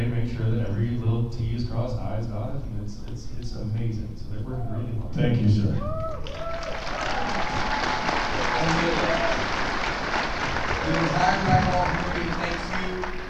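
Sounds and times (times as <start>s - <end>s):
speech: 0.3s - 6.8s, 10.9s - 13.2s
audience applause at an anime fan convention: 6.0s - 13.2s.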